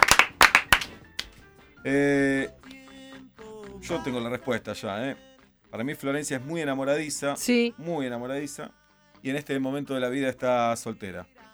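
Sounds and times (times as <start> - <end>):
applause: 0.0 - 1.4
speech: 1.8 - 2.6, 3.9 - 11.4.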